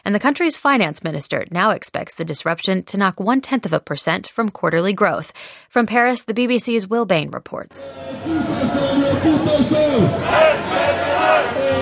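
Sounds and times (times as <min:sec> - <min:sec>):
speech: 0:00.1 - 0:10.8
protest crowd chanting in the street in France: 0:07.8 - 0:11.8.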